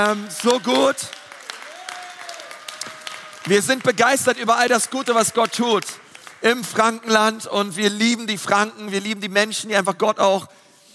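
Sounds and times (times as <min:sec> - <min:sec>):
speech: 0:00.0 - 0:01.2, 0:03.4 - 0:10.6
audience applause: 0:00.0 - 0:06.6.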